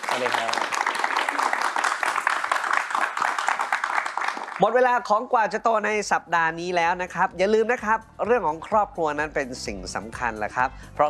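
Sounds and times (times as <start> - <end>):
audience applause: 0.0 - 4.8
speech: 0.2 - 0.8, 4.6 - 11.0.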